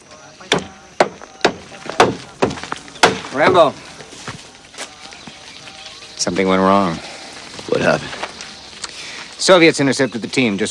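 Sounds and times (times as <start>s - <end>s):
hammering a large wooden wheel onto an upturned cart: 0.5s - 3.8s
speech: 3.4s - 3.9s, 6.2s - 7.1s, 7.7s - 8.2s, 9.4s - 10.6s.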